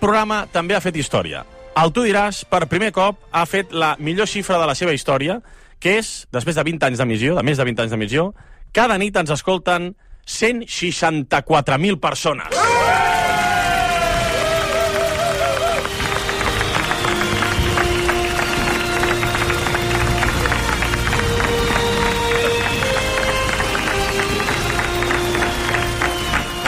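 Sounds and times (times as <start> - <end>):
speech: 0.0 - 13.2
impromptu newsroom applause: 12.5 - 26.6.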